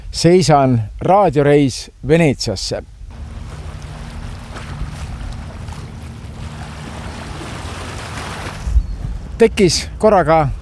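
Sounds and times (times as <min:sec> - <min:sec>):
wind at the edge of a bay: 0:00.0 - 0:10.6
speech: 0:00.2 - 0:03.0, 0:09.4 - 0:10.6.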